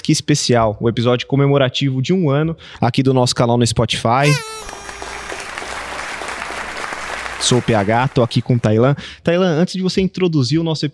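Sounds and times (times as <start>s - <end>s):
speech: 0.1s - 4.8s, 7.4s - 10.9s
live studio audience applause: 4.3s - 8.9s.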